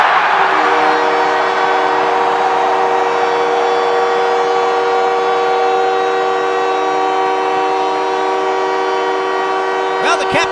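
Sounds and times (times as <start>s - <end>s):
hockey arena crowd cheering after goal: 0.0s - 10.4s
low droning goal horn: 0.0s - 10.4s.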